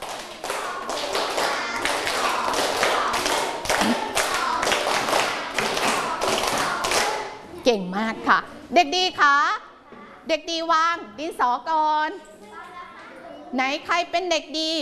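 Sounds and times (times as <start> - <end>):
students clapping in unison: 0.0 - 7.3
speech: 7.7 - 9.6, 10.3 - 12.3, 13.5 - 14.8.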